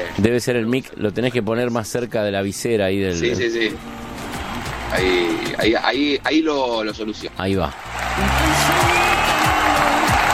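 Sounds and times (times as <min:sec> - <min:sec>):
speech: 0:00.2 - 0:04.0, 0:04.9 - 0:08.8
audience applauding: 0:04.1 - 0:05.8, 0:07.6 - 0:10.3.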